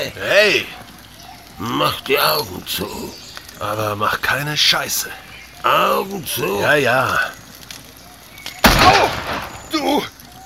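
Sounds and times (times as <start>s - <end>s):
speech: 0.0s - 0.8s, 1.6s - 7.4s, 9.8s - 10.1s
gunshot in a German-language radio drama: 8.6s - 9.7s.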